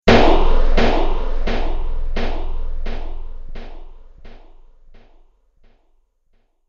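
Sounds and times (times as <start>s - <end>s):
slow-motion delay space impact: 0.1s - 5.2s.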